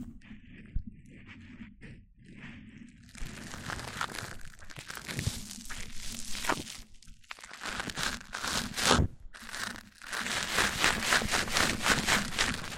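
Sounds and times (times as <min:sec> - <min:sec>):
microphone rubbing and crinkly scraping against a microphone: 0:00.0 - 0:12.7.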